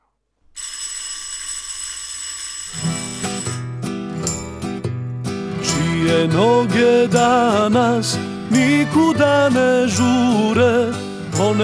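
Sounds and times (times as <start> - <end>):
loud electric school bell ringing: 0.6 - 4.6
speech: 6.1 - 11.6.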